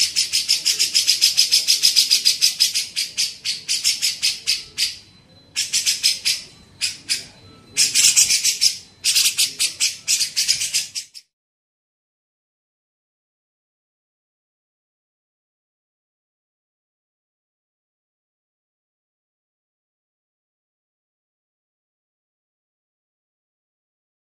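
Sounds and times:
Grey-cheeked bulbul harsh chatter: 0.0s - 11.3s
faint steady high tone: 4.1s - 10.1s.

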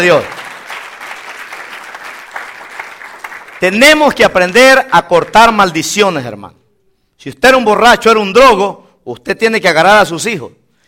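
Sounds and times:
speech: 0.0s - 0.4s, 3.6s - 6.6s, 7.2s - 10.6s
congregation clapping during a church sermon: 0.0s - 5.6s.

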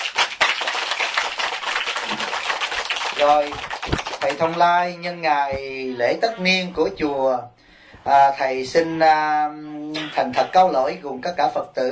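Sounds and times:
audience applause: 0.0s - 4.6s
speech: 3.2s - 11.9s.

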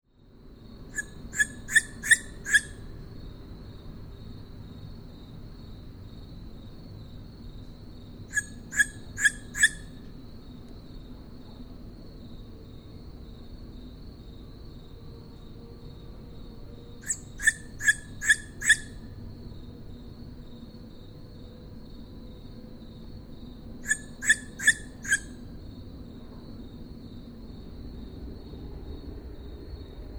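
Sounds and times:
owl giving loud high whistled calls at Židlochovice: 0.9s - 2.9s, 8.3s - 10.1s, 17.0s - 19.1s, 23.8s - 25.4s.

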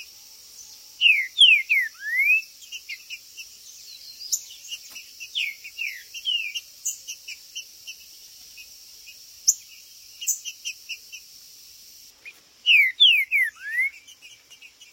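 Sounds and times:
green-winged saltator whistling song: 1.0s - 3.0s, 12.2s - 14.1s.

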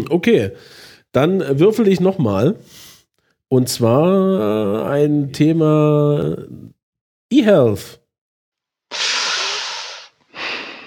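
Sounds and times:
speech: 0.0s - 2.9s, 3.5s - 8.0s
loud huffing breath: 8.9s - 10.8s.

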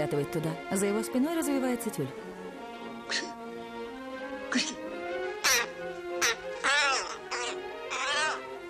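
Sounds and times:
speech: 0.0s - 2.4s, 3.1s - 3.3s, 4.5s - 4.8s
crow cawing as it flies into a room: 5.4s - 8.6s.

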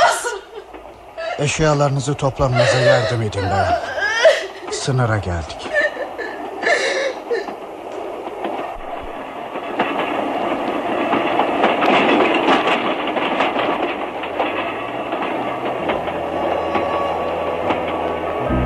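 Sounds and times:
laughter: 0.0s - 1.6s, 2.2s - 7.6s
train rumbling on rails: 0.0s - 18.6s
rhythmic clacking of train on rails: 0.6s - 18.6s
speech: 1.4s - 4.0s, 4.8s - 5.7s
metallic screeches of train: 15.4s - 18.6s.

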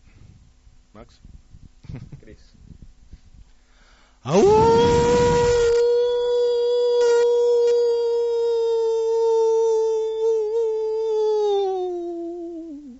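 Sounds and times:
speech: 1.0s - 2.7s, 4.2s - 5.2s
person imitating a howl: 4.3s - 12.9s.

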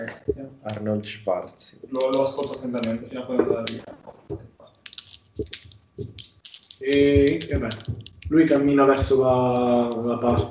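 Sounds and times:
speech: 0.0s - 4.4s, 6.9s - 10.4s
dice rattling and clacking at the microphone: 2.0s - 3.0s, 4.7s - 10.2s.

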